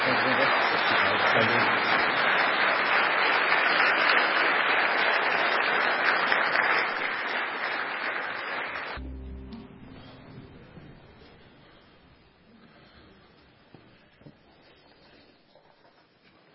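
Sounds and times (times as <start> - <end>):
audience applause: 0.0 - 9.0.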